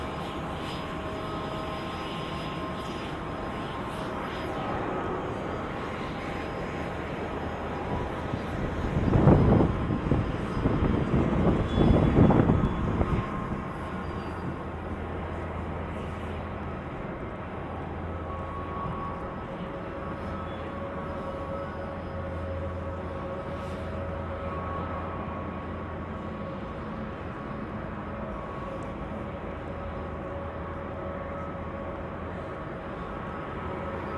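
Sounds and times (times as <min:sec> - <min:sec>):
airfield engine drone: 0:00.0 - 0:34.1.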